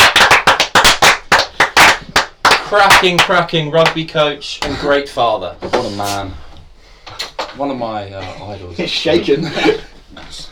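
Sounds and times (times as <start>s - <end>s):
small group hand clapping: 0.0s - 4.8s
speech: 2.7s - 6.4s, 7.6s - 10.5s.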